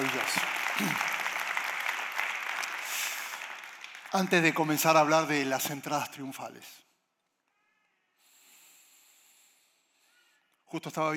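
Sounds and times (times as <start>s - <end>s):
applause: 0.0s - 6.4s
speech: 0.2s - 1.1s, 4.1s - 6.9s, 10.7s - 11.1s.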